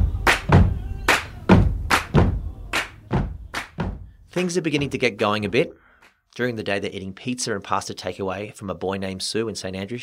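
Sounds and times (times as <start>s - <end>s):
sharp bright hand claps: 0.0s - 4.9s
heavy booming foot stomps: 0.0s - 5.6s
speech: 4.4s - 10.0s.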